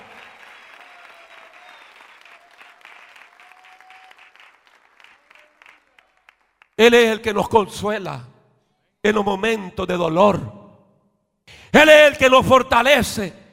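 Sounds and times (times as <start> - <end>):
audience applauding: 0.0 - 6.8
speech: 6.8 - 8.3, 9.0 - 10.6, 11.7 - 13.4.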